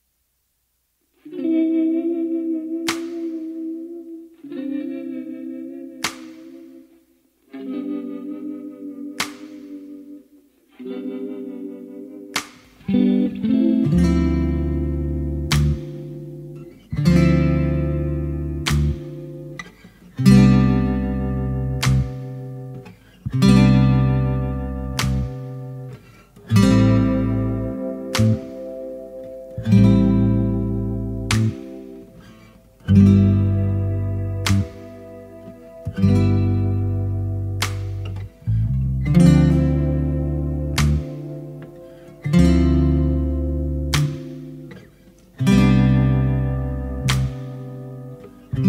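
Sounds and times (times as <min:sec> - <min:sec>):
acoustic instrumental music: 0:00.9 - 0:48.6.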